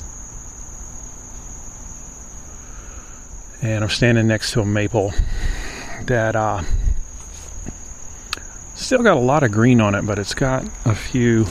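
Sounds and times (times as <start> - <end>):
insect calling with thin very high tone: 0.0 - 11.4
low rumbling background noise: 3.5 - 11.4
speech: 3.6 - 6.8, 8.8 - 11.4.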